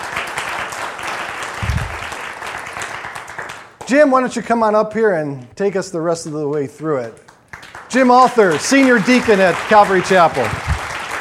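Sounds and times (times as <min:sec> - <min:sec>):
audience applause welcoming a man forward: 0:00.0 - 0:03.8, 0:07.5 - 0:11.1
low thump: 0:01.6 - 0:02.0
speech: 0:03.9 - 0:07.3, 0:07.9 - 0:10.7.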